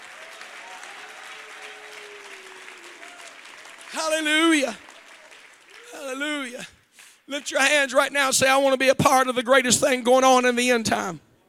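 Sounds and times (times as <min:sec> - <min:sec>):
audience clapping hands: 0:00.0 - 0:08.2
speech: 0:03.9 - 0:04.9, 0:06.0 - 0:11.3.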